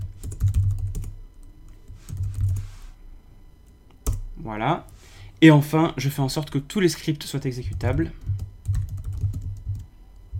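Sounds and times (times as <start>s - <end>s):
typing a username on a computer keyboard: 0.0s - 1.1s, 7.7s - 9.9s
speech: 4.4s - 8.4s.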